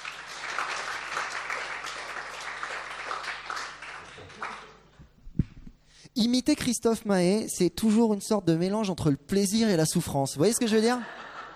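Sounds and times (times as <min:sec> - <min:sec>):
audience applause: 0:00.0 - 0:04.8
speech: 0:06.2 - 0:11.2
laughter: 0:10.9 - 0:11.5.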